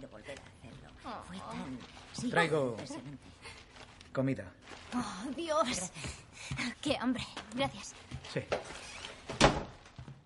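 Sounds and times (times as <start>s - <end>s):
speech: 1.1s - 3.4s, 4.2s - 8.8s
door shut in someone's face in an action thriller film scene: 9.2s - 9.8s.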